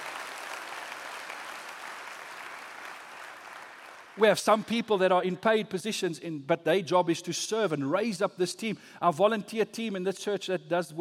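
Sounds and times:
audience applause: 0.0s - 4.3s
speech: 4.2s - 10.9s.

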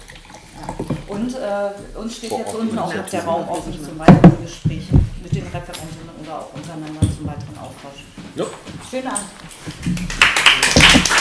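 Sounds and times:
speech: 1.1s - 10.7s
audience applause: 9.8s - 11.1s.

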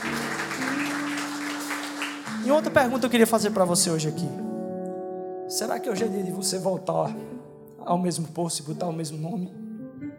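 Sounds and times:
audience applause: 0.0s - 3.0s
speech: 2.4s - 4.6s, 5.5s - 9.6s.

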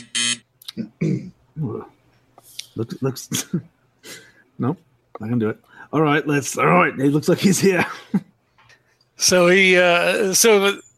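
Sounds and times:
door buzzer: 0.0s - 0.4s
speech: 2.8s - 8.3s, 9.2s - 10.8s.

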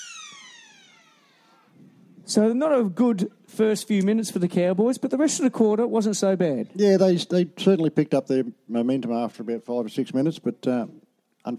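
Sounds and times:
quarter-time siren at a football ground: 0.0s - 2.1s
speech: 2.3s - 11.5s.

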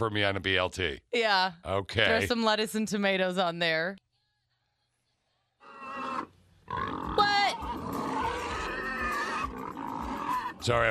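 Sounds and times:
speech: 0.0s - 4.0s, 10.6s - 10.8s
voice imitating pig squeals: 5.6s - 10.8s.

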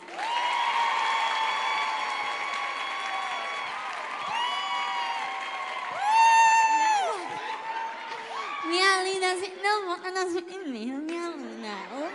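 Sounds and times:
audience applause: 0.0s - 8.6s
speech: 9.6s - 12.0s.

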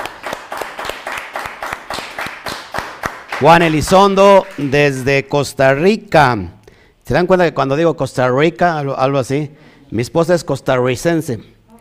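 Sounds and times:
audience applause: 0.0s - 5.1s
speech: 3.4s - 11.5s.

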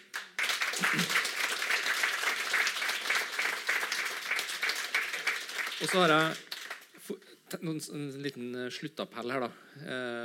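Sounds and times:
audience applause for the panel: 0.0s - 6.9s
speech: 5.8s - 6.5s, 7.1s - 10.2s.

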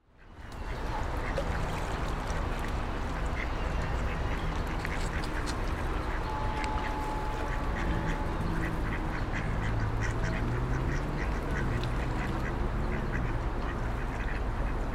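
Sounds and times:
passing traffic rumble: 0.0s - 14.9s
ducks quacking: 0.2s - 14.9s.

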